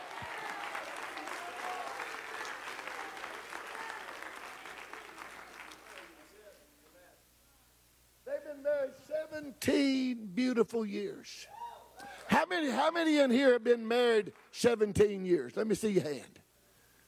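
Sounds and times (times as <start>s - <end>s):
audience clapping: 0.0s - 7.0s, 14.1s - 14.8s
speech: 8.8s - 11.6s, 12.4s - 16.4s.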